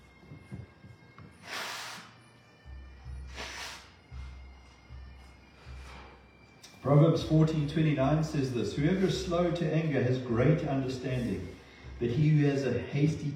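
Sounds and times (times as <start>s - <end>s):
nose blowing: 1.4s - 2.3s, 3.1s - 4.5s
speech: 6.8s - 13.3s.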